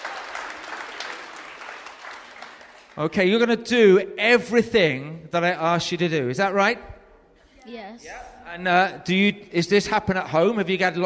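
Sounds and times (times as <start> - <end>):
audience applause greeting two volunteers on stage: 0.0 - 3.3
speech: 3.0 - 6.9, 7.6 - 11.0.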